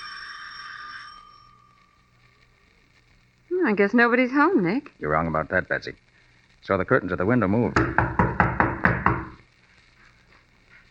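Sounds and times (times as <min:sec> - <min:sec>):
speech: 0:03.6 - 0:06.0, 0:06.6 - 0:08.2
fist pounding on a door: 0:07.8 - 0:09.3.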